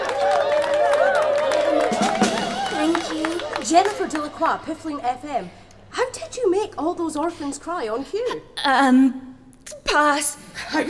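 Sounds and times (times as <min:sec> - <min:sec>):
crowd clapping and cheering: 0:00.0 - 0:05.3
speech: 0:03.7 - 0:09.3, 0:09.9 - 0:10.8.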